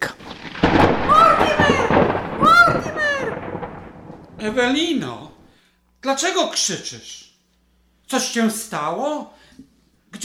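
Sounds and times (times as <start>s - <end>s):
thunder during a storm: 0.0s - 5.6s
speech: 4.4s - 5.3s, 6.0s - 7.3s, 8.1s - 10.2s.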